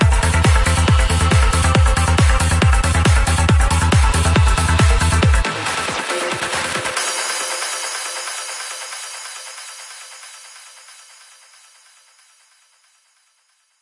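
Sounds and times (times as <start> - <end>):
progressive psytrance drum kit sounds: 0.0 - 10.9.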